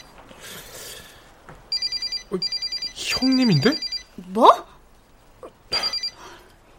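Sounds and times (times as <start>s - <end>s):
phone ringing with rapidly pulsing trills: 1.7s - 4.2s, 5.8s - 6.4s
speech: 2.3s - 4.7s.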